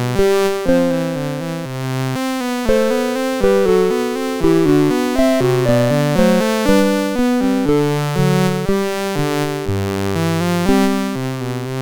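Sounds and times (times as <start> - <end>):
bourree played on a MOS6581 sound chip: 0.1 - 11.6.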